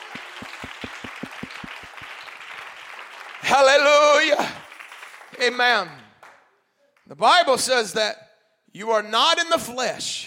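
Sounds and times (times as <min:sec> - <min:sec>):
audience clapping hands: 0:00.0 - 0:07.1
speech: 0:05.4 - 0:06.0, 0:07.1 - 0:10.2.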